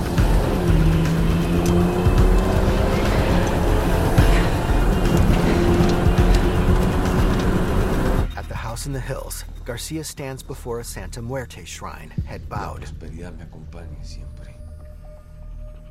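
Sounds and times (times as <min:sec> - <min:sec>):
car engine revving as it starts and drives away: 0:00.0 - 0:08.3
speech: 0:09.1 - 0:14.6.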